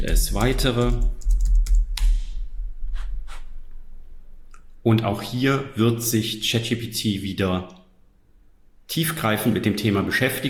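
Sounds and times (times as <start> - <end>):
speech: 0.0 - 1.2, 4.8 - 7.8, 8.9 - 10.4
computer keyboard keystrokes typing a question into ChatGPT: 0.0 - 2.3.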